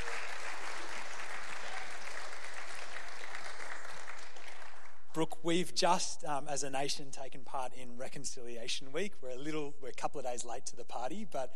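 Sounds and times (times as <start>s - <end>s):
church audience applauding to welcome a guest: 0.0s - 5.1s
speech: 5.2s - 11.5s.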